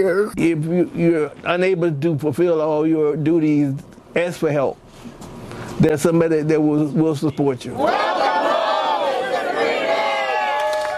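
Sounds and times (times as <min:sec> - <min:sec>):
speech: 0:00.0 - 0:05.2, 0:05.8 - 0:08.3
crowd screaming and cheering: 0:07.8 - 0:10.9.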